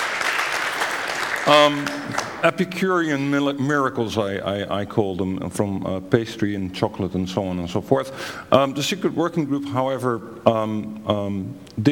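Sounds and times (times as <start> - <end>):
audience clapping: 0.0 - 2.9
speech: 1.5 - 11.9.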